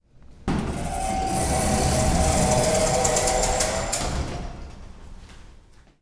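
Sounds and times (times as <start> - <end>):
elevator door opening: 0.5 - 4.8.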